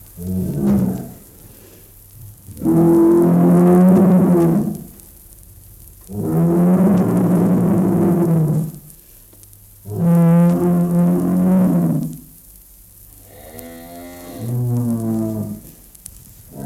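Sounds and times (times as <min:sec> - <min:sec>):
bull bellowing a long deep moo: 0:00.2 - 0:01.3, 0:02.6 - 0:04.9, 0:06.1 - 0:08.8, 0:09.9 - 0:12.2, 0:13.2 - 0:15.7, 0:16.5 - 0:16.6.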